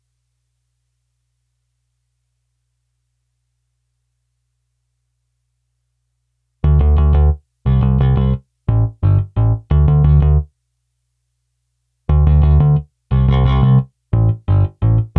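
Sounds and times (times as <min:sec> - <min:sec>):
bass: 0:06.6 - 0:10.5, 0:12.1 - 0:15.1.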